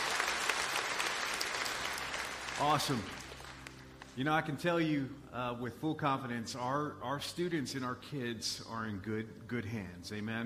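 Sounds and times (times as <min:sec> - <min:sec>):
audience clapping: 0:00.0 - 0:04.3
speech: 0:02.6 - 0:03.2, 0:04.2 - 0:10.4.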